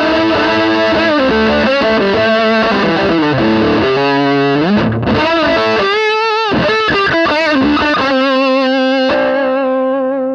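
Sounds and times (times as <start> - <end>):
electric guitar through a Park Fuzz pedal voiced like a Big Muff: 0.0 - 10.3.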